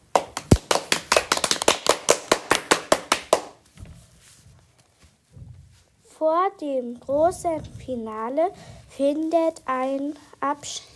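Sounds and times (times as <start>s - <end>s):
applause: 0.0s - 3.6s
speech: 6.2s - 10.9s.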